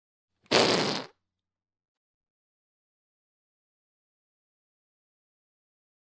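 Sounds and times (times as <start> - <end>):
whoopee cushion: 0.5 - 1.1.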